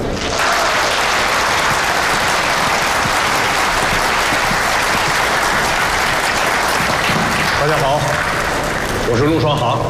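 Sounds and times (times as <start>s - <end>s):
large audience applause welcoming a speaker: 0.1s - 9.8s.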